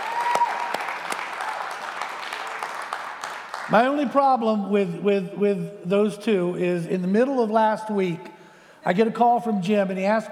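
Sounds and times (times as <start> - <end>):
audience clapping: 0.0 - 4.2
speech: 3.7 - 10.2.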